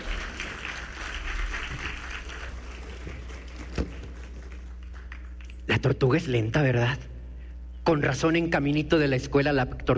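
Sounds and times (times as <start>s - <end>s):
audience applause: 0.0s - 5.5s
speech: 5.8s - 7.1s, 7.9s - 9.9s.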